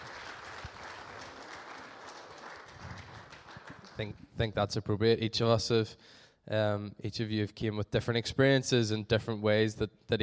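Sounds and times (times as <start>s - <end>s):
audience applause: 0.0s - 4.1s
speech: 4.0s - 10.2s.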